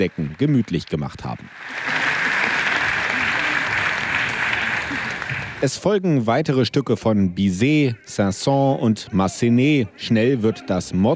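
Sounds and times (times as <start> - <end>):
speech: 0.0 - 2.0, 5.6 - 11.1
outdoor concert audience applause: 0.0 - 5.8.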